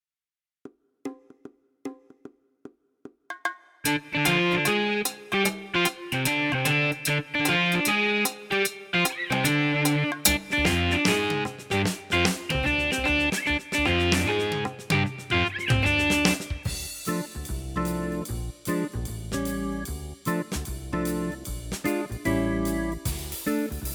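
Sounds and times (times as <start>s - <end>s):
rock music: 3.9s - 23.9s.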